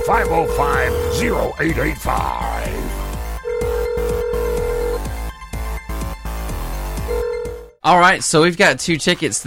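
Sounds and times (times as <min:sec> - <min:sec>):
telephone ringing with an incoming call to a radio show: 0:00.0 - 0:01.8, 0:03.2 - 0:05.1, 0:07.0 - 0:07.8
speech: 0:00.0 - 0:02.9, 0:07.8 - 0:09.4
rhythmic beats: 0:00.0 - 0:07.7.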